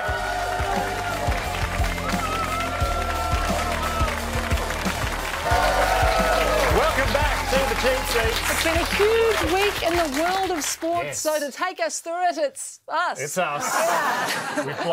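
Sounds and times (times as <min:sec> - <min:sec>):
audience applause thanking a guest: 0:00.0 - 0:11.2
speech: 0:07.8 - 0:14.9
laughter: 0:13.5 - 0:14.9.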